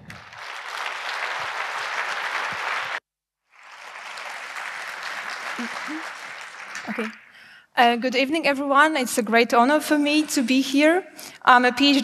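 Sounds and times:
crowd applause: 0:00.0 - 0:07.5
speech: 0:06.9 - 0:07.2, 0:07.8 - 0:12.0.

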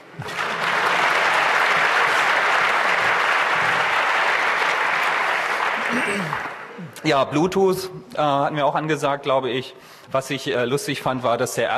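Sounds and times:
audience applause: 0:00.0 - 0:06.8
speech: 0:07.0 - 0:11.7.

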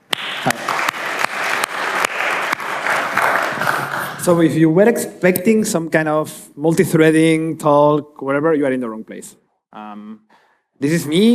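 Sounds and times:
warm round of applause: 0:00.0 - 0:04.3
speech: 0:04.2 - 0:11.3.

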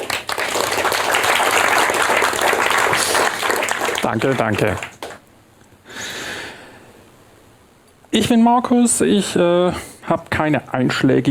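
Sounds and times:
audience applause: 0:00.0 - 0:05.3
speech: 0:04.1 - 0:04.9, 0:08.2 - 0:11.2.

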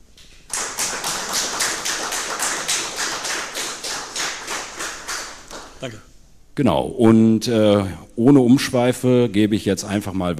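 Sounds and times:
audience applause: 0:00.5 - 0:05.8
speech: 0:05.8 - 0:10.3.

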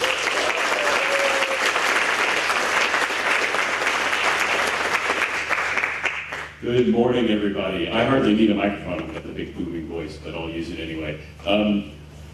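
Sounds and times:
large audience applause welcoming a speaker: 0:00.0 - 0:06.6
speech: 0:06.6 - 0:12.0.

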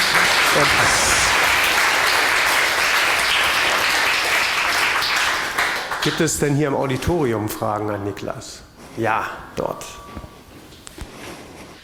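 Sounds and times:
audience applause: 0:00.0 - 0:06.3
speech: 0:00.6 - 0:01.1, 0:06.0 - 0:10.2.

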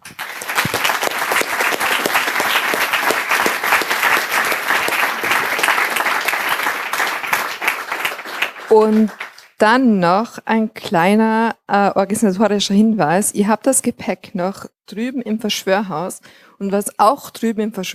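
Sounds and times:
audience applause: 0:00.0 - 0:09.6
speech: 0:08.7 - 0:17.9.

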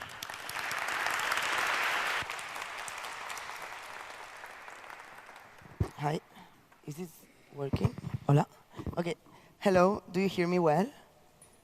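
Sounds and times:
warm round of applause: 0:00.0 - 0:06.3
speech: 0:06.0 - 0:06.3, 0:06.9 - 0:11.0.

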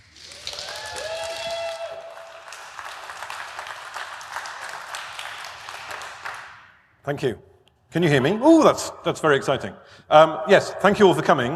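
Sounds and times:
audience applause at an EMF event: 0:00.0 - 0:06.6
speech: 0:07.1 - 0:11.5.

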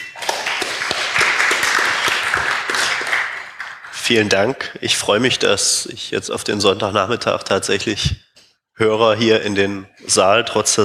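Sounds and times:
audience applause: 0:00.0 - 0:04.4
speech: 0:04.1 - 0:08.2, 0:08.8 - 0:10.8.

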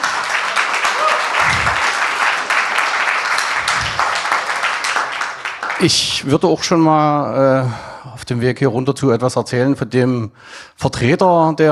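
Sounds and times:
audience applause for award winners: 0:00.0 - 0:06.1
speech: 0:05.8 - 0:11.7.

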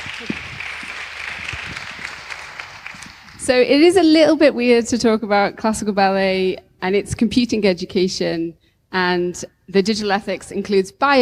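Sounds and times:
applause: 0:00.0 - 0:03.5
speech: 0:03.5 - 0:11.2.

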